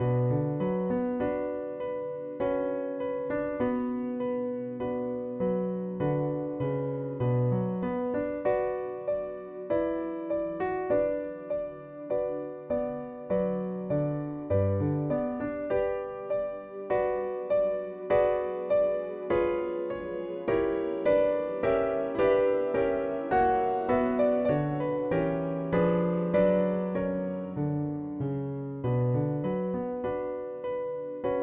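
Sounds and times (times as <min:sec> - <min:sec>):
prelude: 0:00.0 - 0:31.4.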